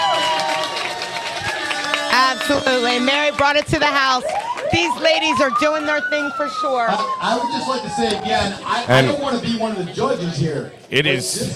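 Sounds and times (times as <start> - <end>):
people shouting and whooping: 0.0 - 9.0
crowd cheering: 0.0 - 10.4
speech: 2.4 - 11.5.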